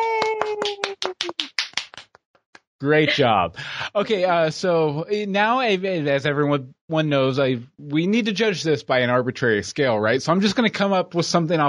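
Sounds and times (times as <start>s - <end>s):
hand clapping: 0.0s - 2.7s
speech: 2.8s - 11.6s.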